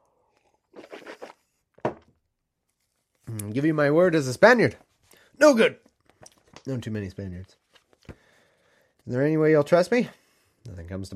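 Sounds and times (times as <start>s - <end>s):
water bottle crinkling: 0.7s - 2.1s, 5.8s - 6.7s
speech: 3.3s - 5.8s, 6.6s - 7.6s, 9.0s - 11.1s.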